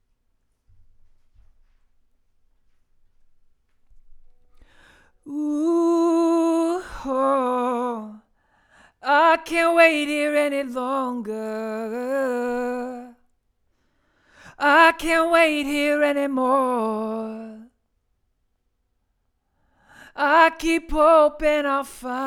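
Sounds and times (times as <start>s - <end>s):
vocals: 4.6s - 13.4s, 14.1s - 17.9s, 19.8s - 22.2s.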